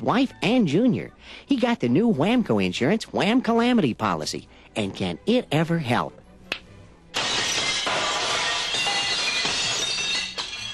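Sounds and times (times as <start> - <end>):
speech: 0.0 - 6.6
window glass shattering: 7.1 - 10.7
glass shards tinkling and clinking: 7.2 - 10.7.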